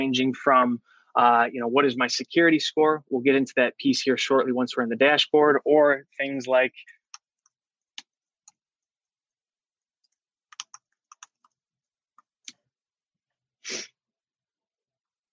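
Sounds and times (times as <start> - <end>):
speech: 0.0 - 7.0
computer keyboard typing: 10.5 - 11.6.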